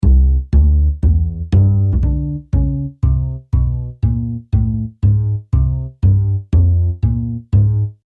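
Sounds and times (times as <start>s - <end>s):
bass: 0.0s - 8.0s.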